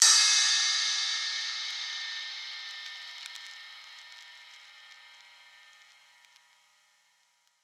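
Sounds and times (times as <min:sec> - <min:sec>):
ride cymbal: 0:00.0 - 0:07.4.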